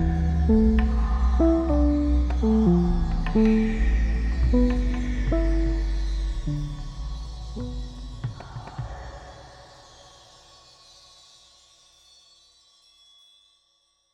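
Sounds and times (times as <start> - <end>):
MIDI music: 0.0 - 8.2.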